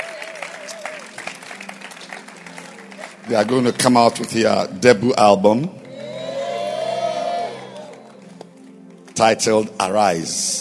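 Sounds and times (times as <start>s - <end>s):
audience clapping hands for a choir: 0.0s - 4.4s, 7.5s - 9.6s
speech: 3.3s - 5.8s, 9.2s - 10.5s.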